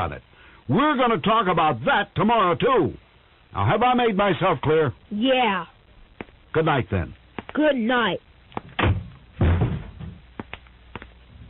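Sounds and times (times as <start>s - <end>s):
speech: 0.0s - 5.7s, 6.6s - 8.3s
shoe thrown against a door: 8.6s - 10.2s.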